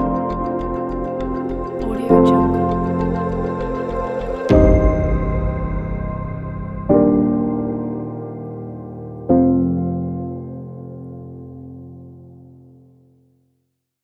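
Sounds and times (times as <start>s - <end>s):
cinematic landscape music: 0.0s - 10.6s.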